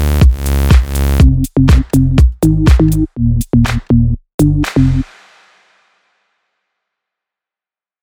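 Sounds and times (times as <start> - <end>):
plucked bass: 0.0 - 5.1.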